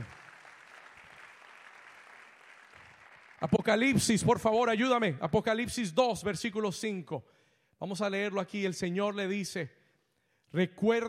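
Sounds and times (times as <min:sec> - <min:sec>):
crowd applause: 0:00.0 - 0:03.9
speech: 0:03.4 - 0:09.8, 0:10.5 - 0:11.0.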